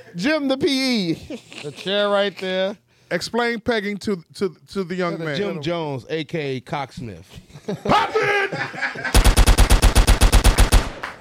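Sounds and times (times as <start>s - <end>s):
speech: 0.1s - 9.1s
laughter: 1.1s - 2.2s, 7.4s - 9.2s
AK rifle gunfire sound effect: 9.2s - 11.2s.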